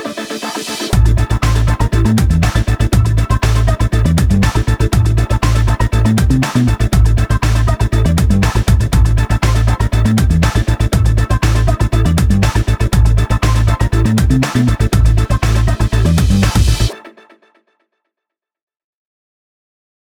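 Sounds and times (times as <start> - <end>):
high tech suspense intro music: 0.4 - 16.9.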